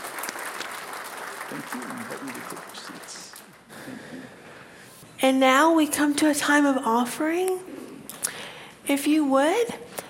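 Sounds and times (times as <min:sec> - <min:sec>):
audience clapping: 0:00.0 - 0:03.7
speech: 0:01.5 - 0:04.4, 0:05.2 - 0:07.7, 0:08.9 - 0:09.9.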